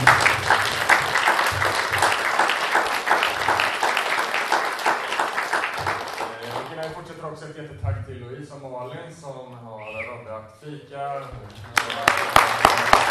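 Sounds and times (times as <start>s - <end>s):
audience applause: 0.0s - 7.0s, 11.6s - 13.0s
speech: 10.4s - 12.8s.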